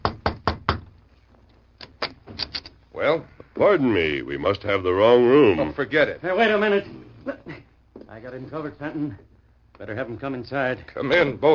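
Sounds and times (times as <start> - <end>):
knocking on a hotel room door: 0.0 - 1.0
speech: 3.0 - 7.6, 8.2 - 11.5.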